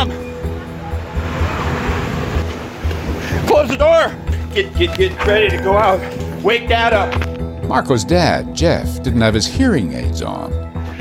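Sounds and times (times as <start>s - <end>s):
flash flood water rushing: 0.0s - 5.3s
speech: 3.7s - 10.6s.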